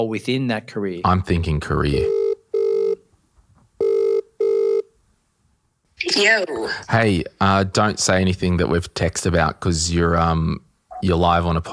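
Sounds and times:
speech: 0:00.0 - 0:02.2, 0:06.2 - 0:11.7
telephone ring tone as a call is placed: 0:02.1 - 0:03.0, 0:03.8 - 0:04.9.

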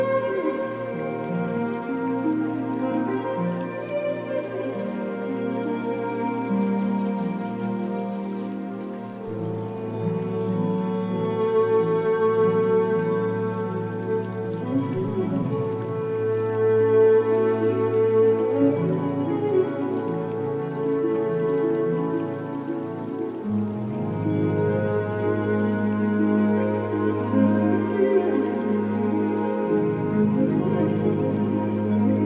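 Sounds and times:
flowing river water: 0:00.0 - 0:32.2
slow relaxing violin music: 0:00.0 - 0:32.2.

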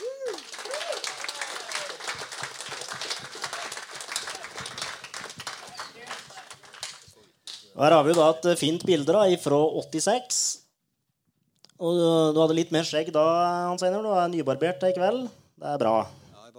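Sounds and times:
audience applause: 0:00.0 - 0:07.2
speech: 0:07.8 - 0:10.6, 0:11.8 - 0:16.2.

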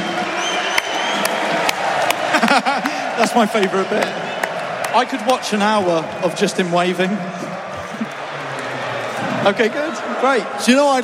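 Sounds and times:
huge stadium crowd cheering: 0:00.0 - 0:11.0
laughter: 0:01.9 - 0:04.3, 0:05.2 - 0:09.9
speech: 0:02.5 - 0:04.2, 0:04.9 - 0:07.4, 0:09.4 - 0:11.0.

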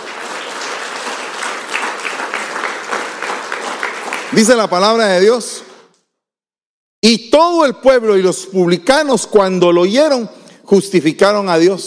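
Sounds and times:
audience applause: 0:00.0 - 0:05.0
speech: 0:04.3 - 0:05.6, 0:07.0 - 0:11.8.

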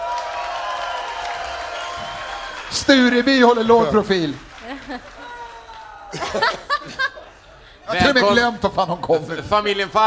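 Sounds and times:
whoops: 0:00.0 - 0:02.7, 0:05.2 - 0:06.2
live crowd clapping: 0:00.0 - 0:06.7
speech: 0:02.7 - 0:05.2, 0:06.1 - 0:07.0, 0:07.9 - 0:10.0
laughter: 0:04.4 - 0:08.6.

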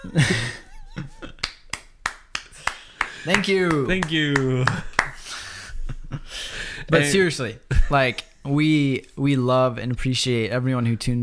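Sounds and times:
speech: 0:00.0 - 0:00.6, 0:03.2 - 0:04.9, 0:06.9 - 0:11.2
laughter: 0:00.0 - 0:01.4
sharp hand claps from a single person: 0:01.2 - 0:05.3.

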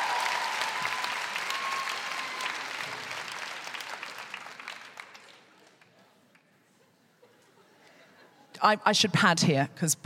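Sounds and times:
crowd applause: 0:00.0 - 0:06.5
speech: 0:08.6 - 0:10.0.

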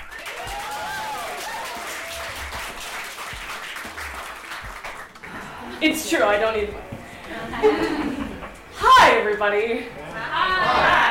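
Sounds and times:
audience applause welcoming a speaker to an evening lecture: 0:00.0 - 0:05.8
speech: 0:05.8 - 0:06.9, 0:07.6 - 0:08.1, 0:09.2 - 0:11.0
laughter: 0:07.1 - 0:08.6.

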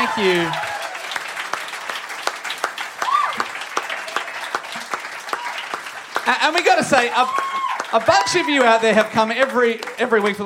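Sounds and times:
audience applause: 0:00.0 - 0:10.4
speech: 0:00.1 - 0:00.7, 0:06.3 - 0:10.4.

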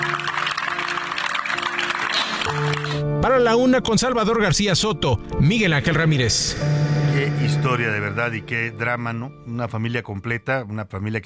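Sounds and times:
sustained applause from hospital staff at a farewell: 0:00.0 - 0:03.0
speech: 0:03.2 - 0:11.2.

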